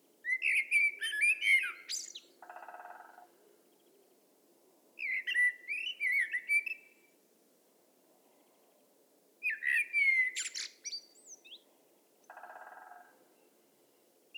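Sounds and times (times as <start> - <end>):
Turdus merula common blackbird singing: 0.2 - 2.7, 5.0 - 7.0, 9.4 - 11.6.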